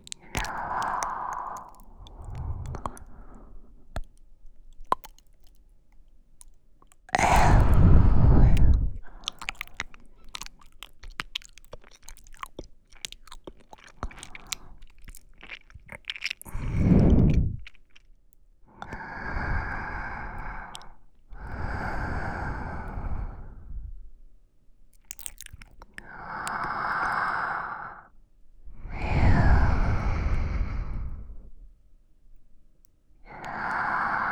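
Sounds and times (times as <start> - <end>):
wet squishing sounds: 0.0 - 22.6, 24.9 - 27.2
sleeping breath in both ears: 0.2 - 3.8, 7.2 - 9.4, 16.5 - 17.7, 18.8 - 24.0, 26.0 - 28.1, 28.7 - 31.7, 33.2 - 34.3.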